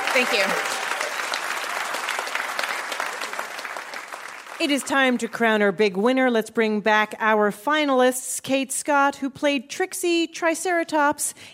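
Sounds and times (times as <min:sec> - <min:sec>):
audience applause: 0:00.0 - 0:05.3
speech: 0:00.2 - 0:00.8, 0:04.6 - 0:11.5.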